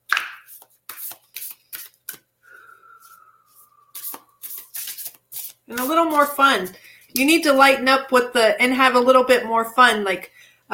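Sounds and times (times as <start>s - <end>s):
activation cards being shuffled: 0.1s - 2.3s, 3.9s - 6.4s
speech: 5.7s - 10.7s.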